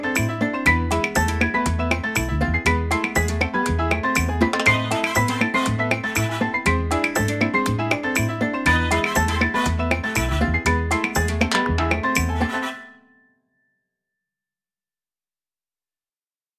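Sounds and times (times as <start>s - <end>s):
salsa ringtone on a Tecno Phantom V Fold: 0.0s - 13.3s.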